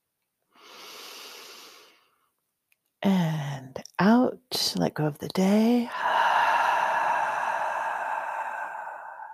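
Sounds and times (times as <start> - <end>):
deep inhale during a guided relaxation breathing exercise: 0.5 - 2.2, 5.9 - 9.3
speech: 3.0 - 3.3, 4.5 - 6.1.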